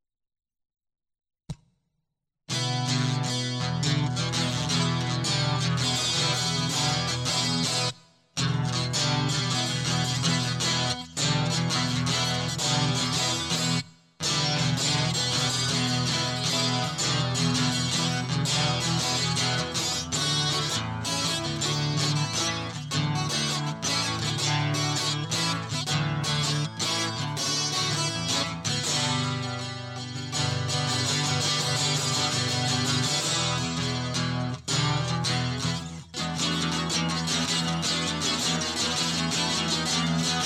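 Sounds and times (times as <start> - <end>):
guitar loop: 2.5 - 40.4.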